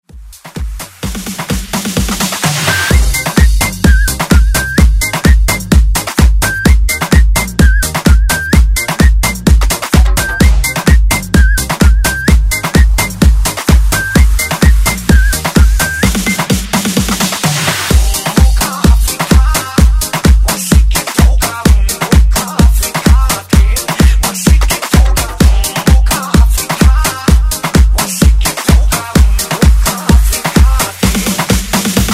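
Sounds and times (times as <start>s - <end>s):
afrobeat music: 0.0s - 32.1s.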